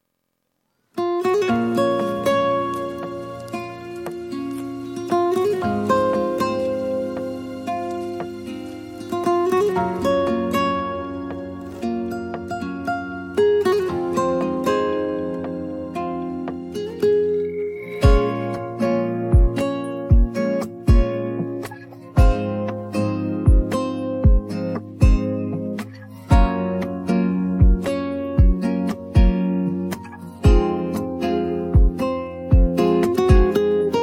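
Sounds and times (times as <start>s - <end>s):
acoustic music: 0.2s - 34.0s.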